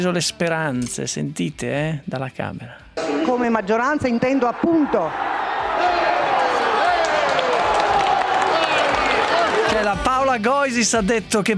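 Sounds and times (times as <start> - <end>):
speech: 0.0 - 6.0, 9.7 - 11.5
applause and cheering in parliament chamber: 4.6 - 10.1.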